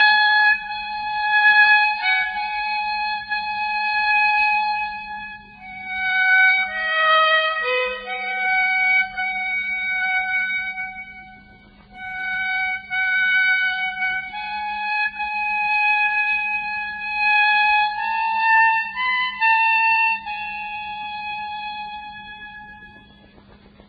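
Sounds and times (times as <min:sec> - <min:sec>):
instrumental music: 0:00.0 - 0:23.8.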